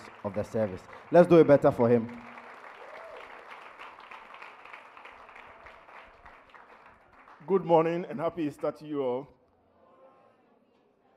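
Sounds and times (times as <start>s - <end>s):
crowd applause: 0.0s - 8.1s
speech: 0.2s - 2.3s, 7.5s - 9.4s.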